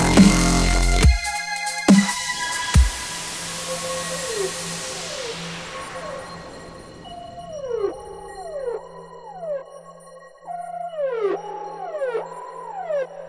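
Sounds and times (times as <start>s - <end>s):
dubstep music: 0.0s - 8.7s.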